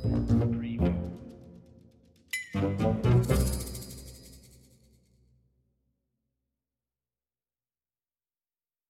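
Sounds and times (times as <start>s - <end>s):
bass: 0.0s - 1.4s, 2.6s - 3.7s
percussion: 0.0s - 5.3s.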